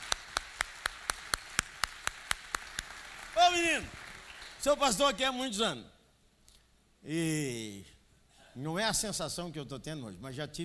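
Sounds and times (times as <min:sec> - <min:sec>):
hand claps: 0:00.0 - 0:04.6
speech: 0:03.5 - 0:04.0, 0:04.6 - 0:05.9, 0:07.0 - 0:07.9, 0:08.6 - 0:10.6.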